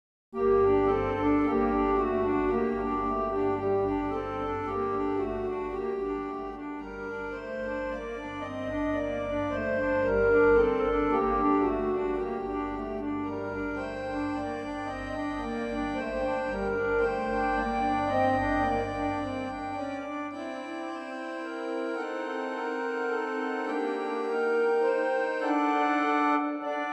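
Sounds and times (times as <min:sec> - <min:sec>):
harmonium carol in G minor: 0:00.4 - 0:26.9.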